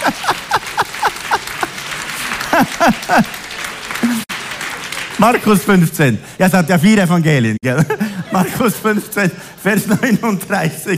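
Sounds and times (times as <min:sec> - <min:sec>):
laughter: 0:00.0 - 0:04.3, 0:07.7 - 0:09.2
audience clapping: 0:00.0 - 0:06.2
speech: 0:02.6 - 0:03.4, 0:04.0 - 0:04.2, 0:05.2 - 0:10.9.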